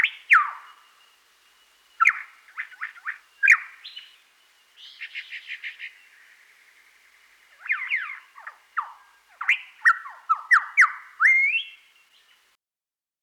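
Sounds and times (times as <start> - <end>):
superb lyrebird calling: 0.0 - 1.0, 2.0 - 6.5, 7.5 - 12.4.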